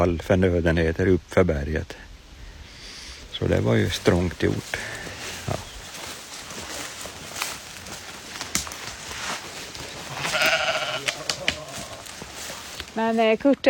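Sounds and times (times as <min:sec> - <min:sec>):
speech: 0:00.0 - 0:02.1, 0:03.4 - 0:05.6, 0:13.0 - 0:13.6
soft scuffs and patter: 0:03.4 - 0:13.6
sheep bleating on a mountain pasture: 0:10.0 - 0:12.2.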